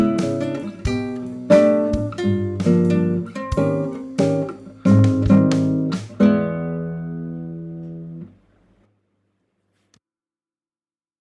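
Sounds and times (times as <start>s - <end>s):
song remix: 0.0s - 6.3s.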